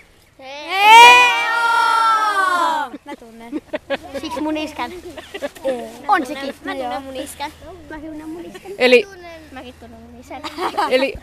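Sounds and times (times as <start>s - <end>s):
audience shouting in response: 0.6s - 2.9s
laughter: 2.4s - 6.9s, 8.2s - 8.8s, 10.4s - 11.2s
speech: 4.4s - 11.2s.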